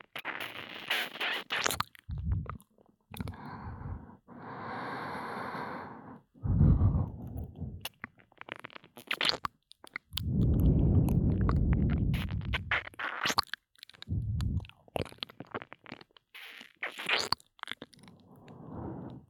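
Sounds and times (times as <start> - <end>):
kissing and licking sounds in the right ear: 0.0 - 3.4, 7.8 - 10.6, 11.2 - 18.1.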